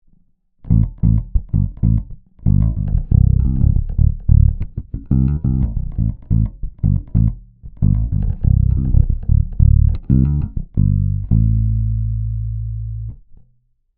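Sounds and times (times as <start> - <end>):
Ibanez EHB1505 bass with neck and bridge pickups and low boost: 0.6 - 13.5.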